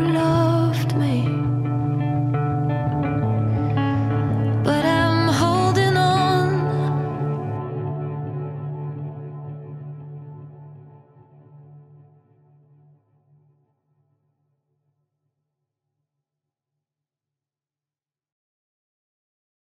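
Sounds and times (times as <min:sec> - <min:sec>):
acoustic music: 0:00.0 - 0:11.6.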